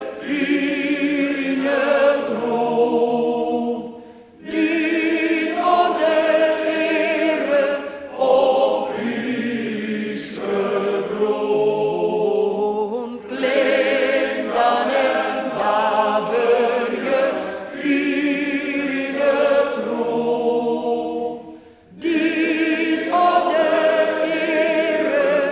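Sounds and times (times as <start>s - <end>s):
Frisian folk song: 0.0s - 25.5s.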